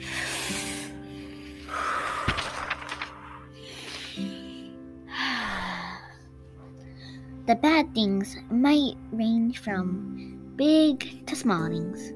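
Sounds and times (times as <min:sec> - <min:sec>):
slow deep breathing: 0:00.0 - 0:07.4
speech: 0:07.5 - 0:12.1.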